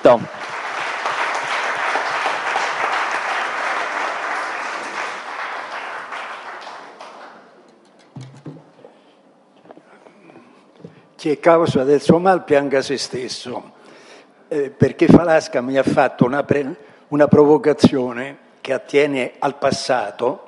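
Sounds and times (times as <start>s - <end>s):
speech: 0.0s - 0.4s, 11.2s - 13.8s, 14.5s - 20.4s
audience applause: 0.0s - 7.5s.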